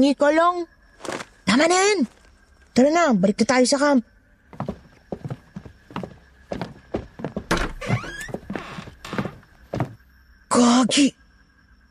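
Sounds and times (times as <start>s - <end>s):
speech: 0.0s - 2.2s, 2.8s - 4.1s, 10.9s - 11.2s
door creaking open: 4.6s - 10.0s
heavy thumps: 4.6s - 10.0s.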